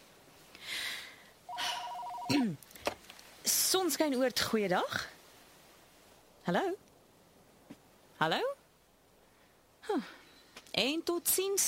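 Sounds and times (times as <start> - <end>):
brief sweeping tone: 1.5 - 2.3
telephone ringing: 1.5 - 2.3
speech: 3.7 - 5.2, 6.5 - 6.9, 8.2 - 8.5, 10.8 - 11.6.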